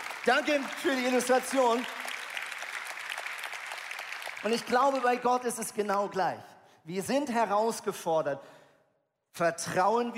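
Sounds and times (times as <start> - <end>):
audience applause: 0.0 - 5.3
speech: 0.2 - 2.0, 4.4 - 8.6, 9.4 - 10.1.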